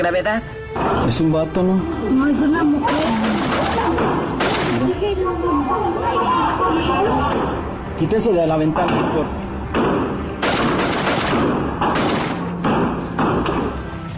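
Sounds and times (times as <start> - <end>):
speech: 0.0 - 10.1
rapid irregular volley of loud gunshots: 2.9 - 4.9, 9.7 - 13.8.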